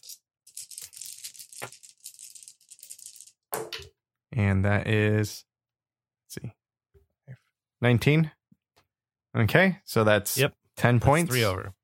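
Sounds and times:
hard-plastic dice rattling and rolling: 0.0 - 3.4
speech: 4.4 - 5.5, 6.3 - 6.6, 7.3 - 8.4, 9.3 - 11.8.

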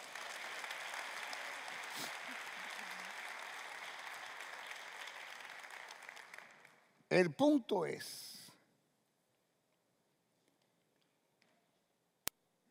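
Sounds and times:
crowd applause: 0.0 - 7.3
speech: 7.1 - 8.3.

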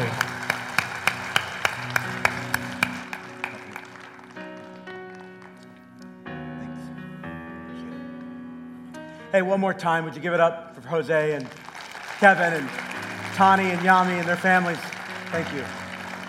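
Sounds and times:
audience applause: 0.0 - 5.7, 11.4 - 16.2
speech: 9.4 - 11.6, 12.2 - 15.8.

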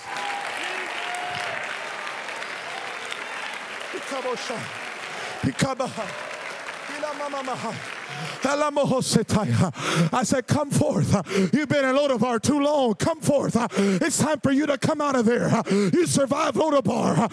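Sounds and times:
audience clapping hands: 0.0 - 9.7
speech: 4.0 - 4.8, 5.4 - 6.3, 6.9 - 17.3.

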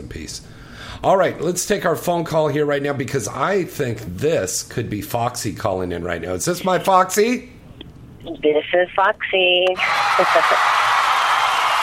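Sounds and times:
speech: 0.1 - 7.6, 8.2 - 10.8
crowd cheering and whooping: 9.8 - 11.8.

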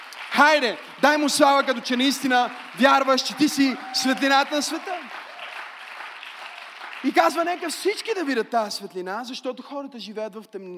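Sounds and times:
audience applause: 0.0 - 8.6
speech: 0.4 - 5.2, 7.0 - 10.7.

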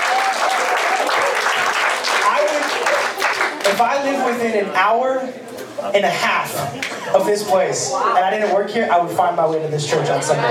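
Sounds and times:
audience applause in church: 0.0 - 4.0
speech: 0.4 - 1.6, 3.7 - 10.4.

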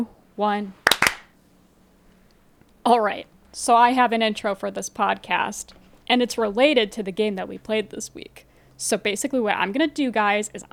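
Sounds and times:
speech: 0.0 - 0.8, 2.8 - 10.7
single hand clap for audio sync: 0.8 - 1.3.

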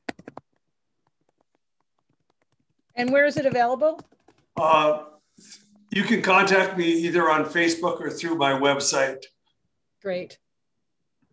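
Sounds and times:
typing on a computer keyboard: 0.0 - 4.6
speech: 3.0 - 9.4, 10.0 - 10.4.

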